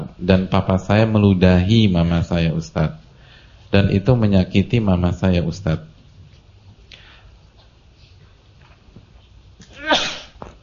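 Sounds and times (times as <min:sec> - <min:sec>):
low noise: 0:00.0 - 0:10.6
speech: 0:00.2 - 0:03.0, 0:03.7 - 0:05.9
sneeze: 0:09.6 - 0:10.5.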